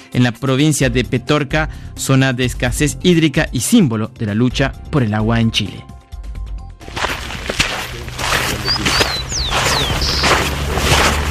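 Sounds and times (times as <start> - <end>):
speech: 0.2 - 5.9
footsteps on loose dry stones of a dry riverbed: 6.8 - 11.2
birds chirping: 7.0 - 11.2.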